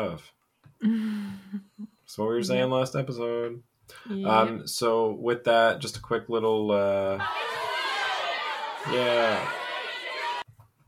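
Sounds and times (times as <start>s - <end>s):
speech: 0.0s - 7.7s, 8.8s - 9.6s
angry crowd shouting and grumbling sound effect: 7.2s - 10.5s.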